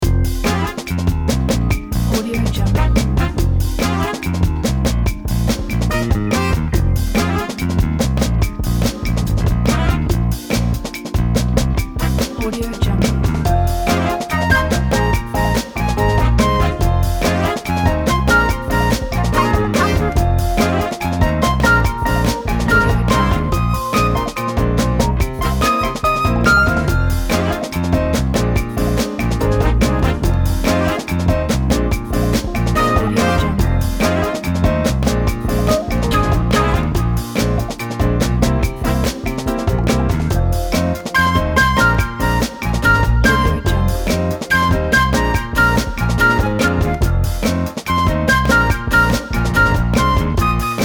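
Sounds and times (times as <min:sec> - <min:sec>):
happy jazzy funky music: 0:00.0 - 0:50.8.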